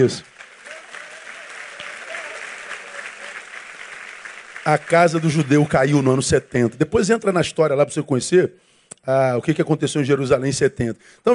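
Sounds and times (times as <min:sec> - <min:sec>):
speech: 0:00.0 - 0:00.4, 0:04.7 - 0:11.3
audience applause: 0:00.0 - 0:06.7.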